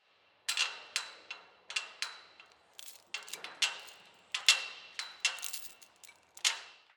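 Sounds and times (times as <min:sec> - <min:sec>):
chains clinking against each other: 0:02.7 - 0:06.6.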